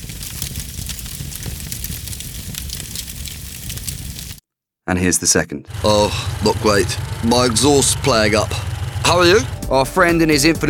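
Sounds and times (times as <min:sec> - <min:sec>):
spreading household fire at night: 0:00.0 - 0:04.4, 0:05.7 - 0:09.6
speech: 0:04.9 - 0:10.6.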